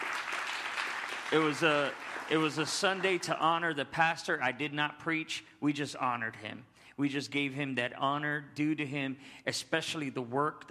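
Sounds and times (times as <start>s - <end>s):
audience hand clapping: 0.0s - 3.6s
speech: 1.3s - 10.6s.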